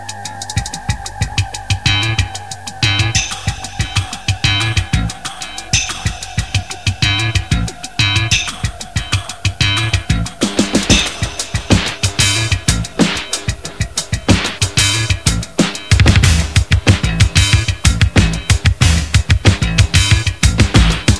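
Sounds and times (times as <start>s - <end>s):
background music: 0.0s - 21.1s.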